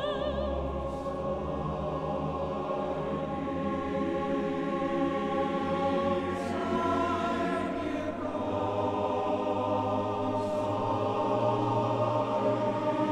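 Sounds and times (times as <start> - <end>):
male choir singing: 0.1 - 13.0.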